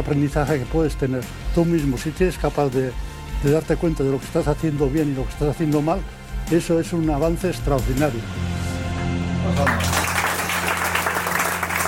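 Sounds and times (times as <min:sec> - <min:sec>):
speech: 0:00.1 - 0:08.5, 0:09.5 - 0:10.0
applause: 0:09.6 - 0:11.8.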